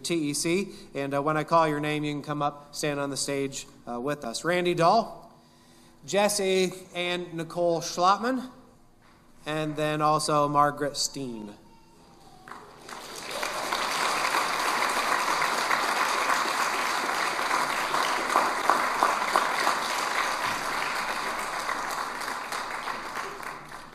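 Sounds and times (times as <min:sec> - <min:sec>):
speech: 0:00.0 - 0:05.2, 0:06.0 - 0:08.6, 0:09.4 - 0:11.6
audience applause: 0:12.5 - 0:23.9.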